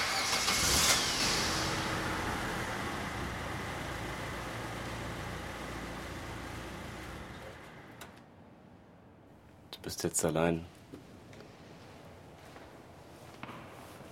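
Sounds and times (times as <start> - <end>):
car engine starting: 0.0 - 8.2
speech: 9.8 - 10.7.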